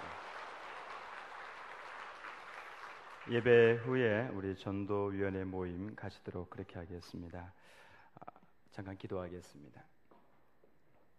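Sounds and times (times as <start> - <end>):
church congregation applause during a worship service: 0.0 - 4.2
speech: 3.3 - 9.9.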